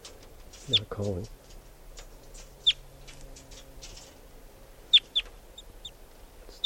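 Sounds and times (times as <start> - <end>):
low steady hum: 0.0 - 6.6
speech: 0.7 - 1.4
wild bird chittering: 2.0 - 2.9, 4.9 - 6.0.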